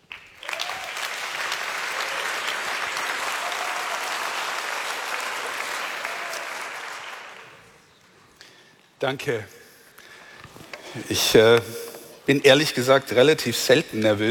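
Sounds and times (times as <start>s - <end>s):
audience applause welcoming Bishop Dr. Stefan Oster before his talk: 0.0s - 7.8s
speech: 9.0s - 9.6s, 10.9s - 14.2s.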